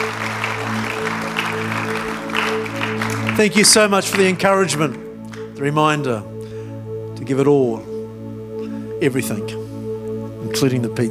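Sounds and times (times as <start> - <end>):
audience applause: 0.0 - 5.5
speech: 3.4 - 5.0, 5.6 - 6.3, 7.2 - 7.9, 9.0 - 9.6, 10.5 - 11.1.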